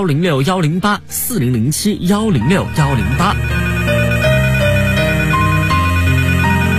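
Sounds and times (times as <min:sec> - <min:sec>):
speech: 0:00.0 - 0:03.7
telephone ringing: 0:02.6 - 0:06.7.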